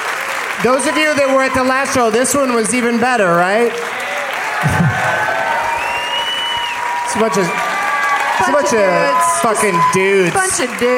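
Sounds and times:
crowd applause and cheering ovation: 0:00.0 - 0:10.9
voices whooping and shouting: 0:00.6 - 0:02.0, 0:04.0 - 0:10.9
speech: 0:00.6 - 0:04.0, 0:04.6 - 0:04.9, 0:07.2 - 0:07.7, 0:08.4 - 0:10.9.

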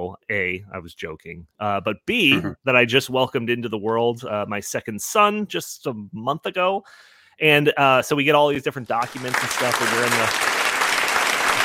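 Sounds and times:
speech: 0:00.1 - 0:10.6
audience applause: 0:09.0 - 0:11.6.

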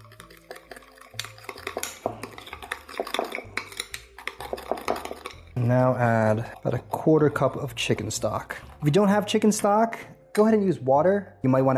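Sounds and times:
utensil stirring ingredients in a bowl: 0:00.0 - 0:10.0
speech: 0:05.6 - 0:11.7.

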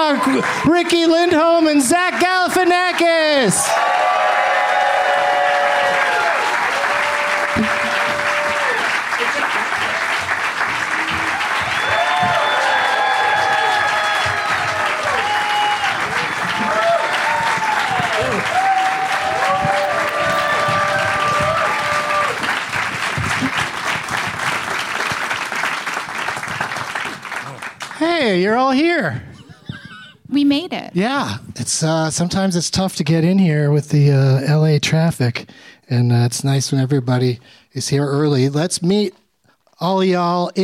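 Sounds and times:
crowd whooping and cheering: 0:00.0 - 0:25.1
crowd clapping: 0:00.0 - 0:28.8
speech: 0:00.1 - 0:04.1, 0:28.2 - 0:29.3, 0:30.4 - 0:39.2, 0:39.8 - 0:40.6.

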